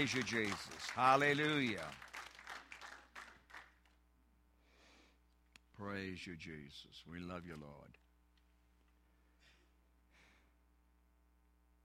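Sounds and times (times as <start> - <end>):
speech: 0.0 - 2.0, 5.8 - 8.0
people clapping their hands in a church: 0.0 - 4.0.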